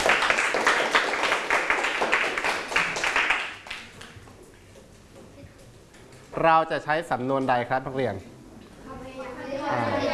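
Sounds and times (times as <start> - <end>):
classroom students clapping for a classmate: 0.0 - 4.2
speech: 6.4 - 8.3.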